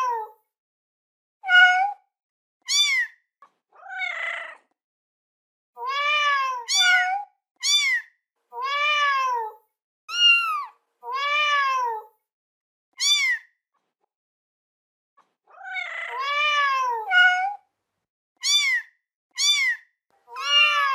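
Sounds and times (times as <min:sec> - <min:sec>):
kitten meowing: 0:01.5 - 0:02.0, 0:02.7 - 0:03.1, 0:05.8 - 0:09.5, 0:10.1 - 0:12.0, 0:13.0 - 0:13.4, 0:15.5 - 0:17.6, 0:18.4 - 0:20.9.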